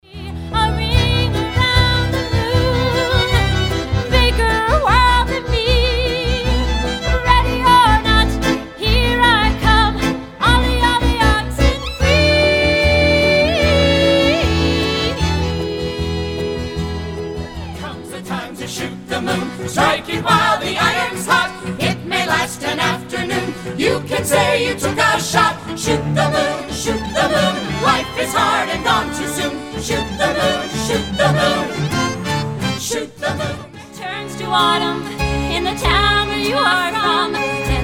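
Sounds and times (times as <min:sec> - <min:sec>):
music mashup: 0:00.3 - 0:37.8.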